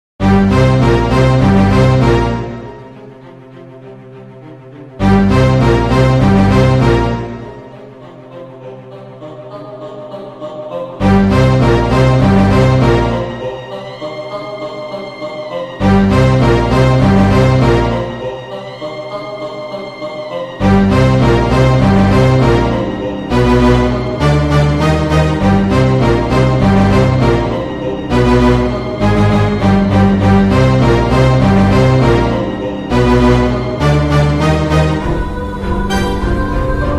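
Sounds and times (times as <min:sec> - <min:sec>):
villain entry background music: 0:00.2 - 0:36.9.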